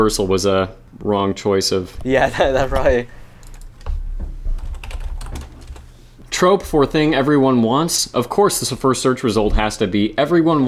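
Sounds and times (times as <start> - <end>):
speech: 0.0 - 3.2, 6.4 - 10.6
computer keyboard typing a web search: 2.0 - 4.0, 4.6 - 7.1.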